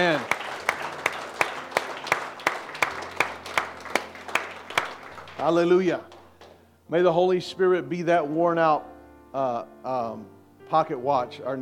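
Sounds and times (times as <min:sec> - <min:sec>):
speech: 0:00.0 - 0:00.4, 0:05.4 - 0:06.2, 0:06.9 - 0:11.5
audience clapping hands: 0:00.0 - 0:06.6.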